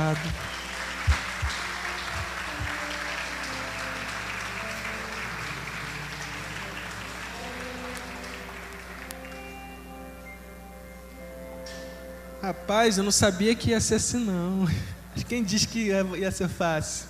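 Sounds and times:
audience clapping in praise: 0.0s - 10.1s
faint tonal hum: 0.0s - 17.0s
speech: 0.1s - 1.2s, 12.4s - 17.0s.

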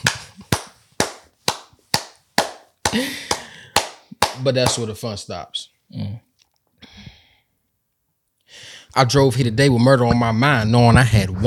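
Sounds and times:
hands clapping: 0.0s - 5.0s
speech: 2.9s - 3.3s, 4.4s - 6.2s, 9.0s - 11.4s.

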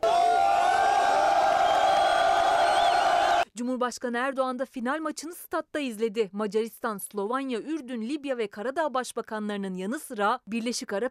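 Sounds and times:
football fans cheering and whooping in Taksim Square: 0.0s - 3.4s
speech: 3.6s - 11.1s.

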